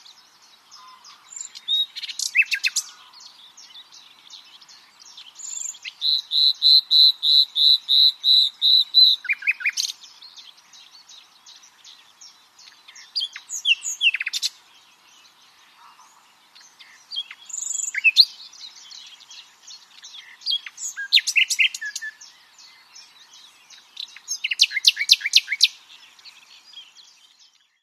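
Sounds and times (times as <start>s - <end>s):
common nightingale Luscinia megarhynchos singing: 0.0s - 27.8s.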